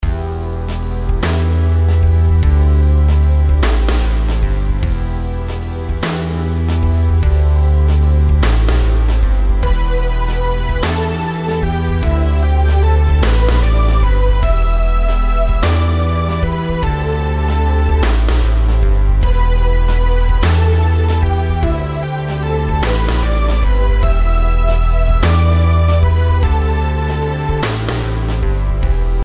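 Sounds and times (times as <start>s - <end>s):
compound rhythms: 0.0s - 29.2s.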